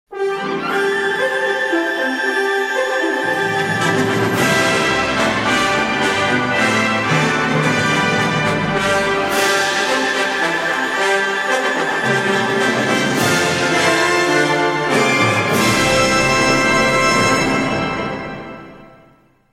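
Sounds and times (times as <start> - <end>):
majestic fanfare: 0.1 - 19.4.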